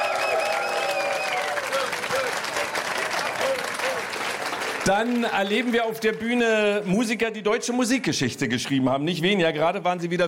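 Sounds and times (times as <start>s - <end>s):
crowd cheering: 0.0s - 7.0s
live audience applause: 0.0s - 7.0s
speech: 4.8s - 10.2s.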